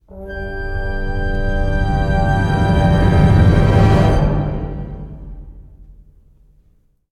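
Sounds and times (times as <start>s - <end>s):
musical stingers: 0.0s - 6.2s.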